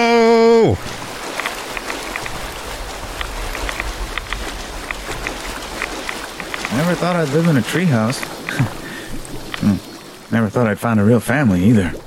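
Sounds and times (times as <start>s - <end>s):
running through wetland water in video game: 0.0s - 12.0s
speech: 7.0s - 8.8s, 10.4s - 12.0s.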